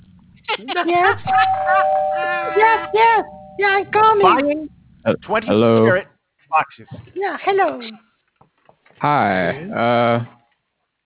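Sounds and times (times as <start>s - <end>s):
speech: 0.5s - 8.1s, 9.0s - 10.4s
doorbell ringing: 1.3s - 4.3s.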